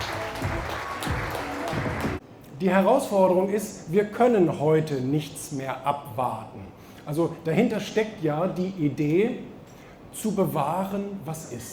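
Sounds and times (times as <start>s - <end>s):
audience applause: 0.0s - 2.2s
speech: 2.6s - 9.5s, 10.1s - 11.7s.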